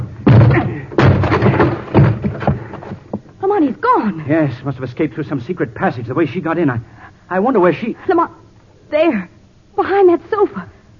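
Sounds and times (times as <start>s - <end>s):
door being broken down: 0.0s - 3.2s
speech: 4.0s - 10.8s.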